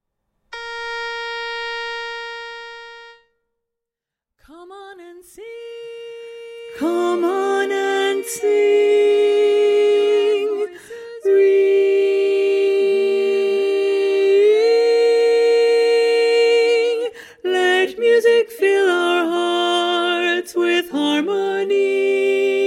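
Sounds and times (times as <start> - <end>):
chorus singing with predominant baritone: 5.0 - 22.6.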